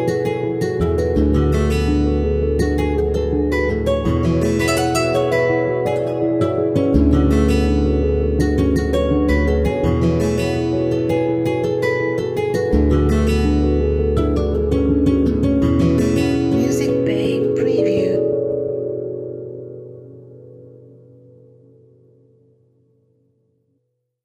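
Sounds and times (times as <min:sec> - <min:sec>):
guitar playing: 0:00.0 - 0:22.4.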